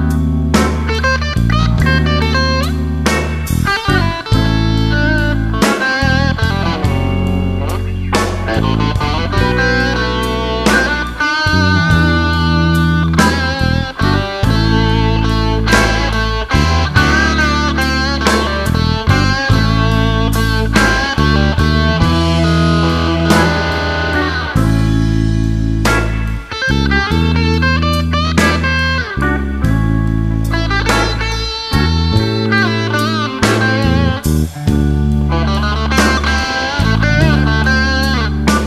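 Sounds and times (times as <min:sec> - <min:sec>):
Nocaster guitar on bridge pickup: 0:00.0 - 0:38.6.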